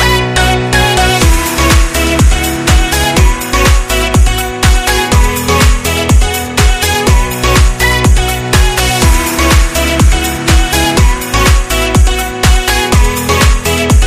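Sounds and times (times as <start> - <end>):
dance music: 0.0 - 14.0.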